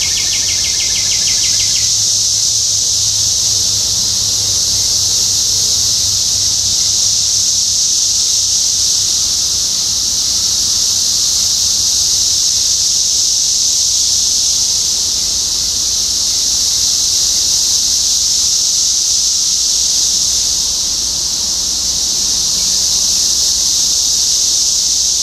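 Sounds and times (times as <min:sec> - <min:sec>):
bird trill: 0:00.0 - 0:01.9
cicada chorus droning: 0:00.0 - 0:25.2.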